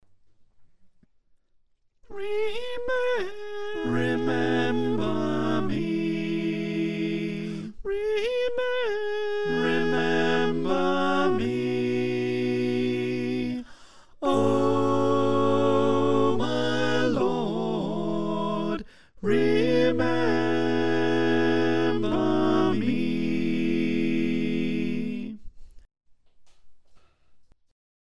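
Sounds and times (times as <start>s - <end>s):
soprano alto tenor bass choir singing: 2.1s - 25.4s.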